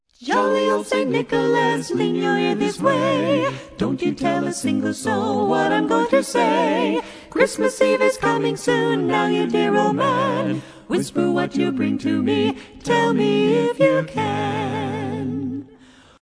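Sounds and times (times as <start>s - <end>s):
festive song: 0.2s - 16.0s.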